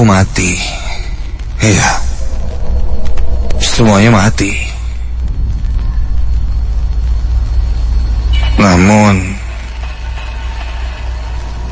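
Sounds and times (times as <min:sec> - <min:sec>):
speech: 0:00.0 - 0:01.0, 0:01.6 - 0:02.1, 0:03.7 - 0:04.7, 0:08.6 - 0:09.4
machine humming: 0:01.3 - 0:08.4.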